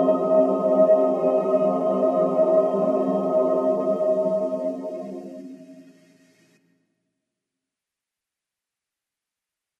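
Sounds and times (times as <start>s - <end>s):
choir singing a Christian a cappella psalm: 0.0s - 6.0s.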